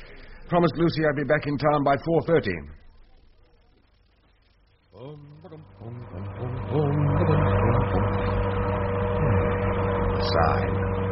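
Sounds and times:
speech: 0.5 - 2.8, 10.3 - 10.8
car engine running while driving: 5.6 - 11.1.

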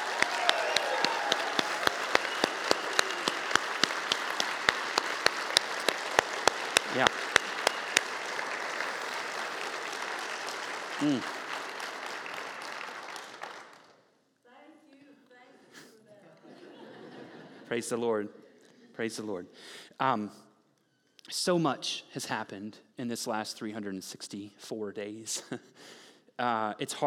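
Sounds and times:
laughter: 0.0 - 12.0, 16.2 - 17.9
audience applause: 0.0 - 14.0
speech: 7.0 - 7.3, 11.0 - 11.4, 17.7 - 18.4, 19.0 - 20.4, 21.3 - 27.0.

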